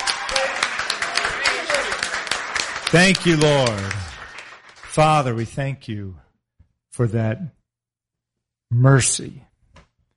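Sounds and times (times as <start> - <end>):
church congregation clapping: 0.0 - 5.7
speech: 2.9 - 4.1, 5.0 - 6.2, 7.0 - 7.6, 8.7 - 9.5.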